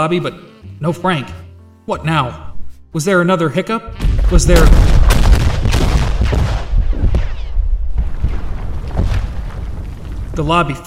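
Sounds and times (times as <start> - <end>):
speech: 0.0 - 5.1, 10.4 - 10.8
explosions going off in a building: 3.9 - 10.8.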